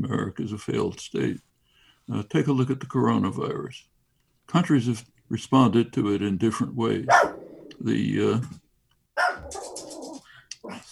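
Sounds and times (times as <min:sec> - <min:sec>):
speech: 0:00.0 - 0:01.5, 0:02.1 - 0:03.9, 0:04.5 - 0:08.6
dog barking: 0:07.1 - 0:07.6, 0:09.2 - 0:10.2.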